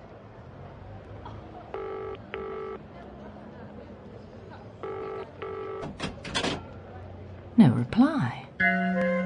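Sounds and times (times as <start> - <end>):
phone line electronic tone bursts: 1.8 - 2.8, 4.8 - 6.0
speech: 7.6 - 9.1.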